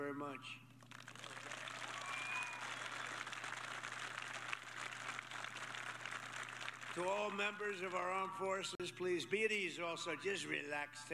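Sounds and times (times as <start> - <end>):
speech: 0.0 - 0.7, 6.9 - 11.1
audience applause: 0.9 - 8.1.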